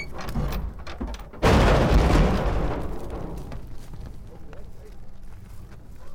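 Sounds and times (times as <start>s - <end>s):
trailer metal rattling: 0.0s - 4.2s
bison herd hooves rumbling out of trailers: 0.0s - 6.1s.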